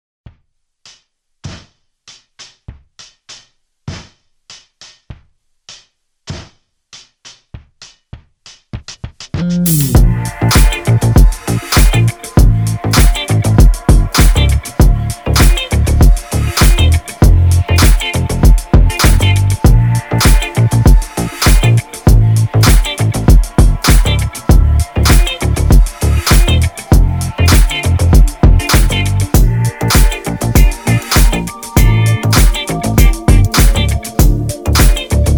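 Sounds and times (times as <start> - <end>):
instrumental music in D minor: 9.4 - 35.3.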